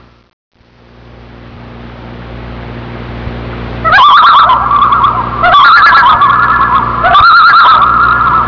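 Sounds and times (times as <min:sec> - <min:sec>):
loon calling with quavering tremolo bursts: 0:03.8 - 0:08.4.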